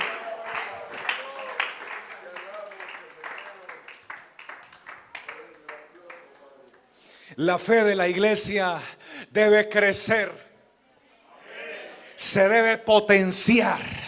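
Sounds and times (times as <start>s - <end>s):
audience clapping: 0.0s - 6.9s
speech: 7.4s - 10.5s, 12.2s - 14.0s.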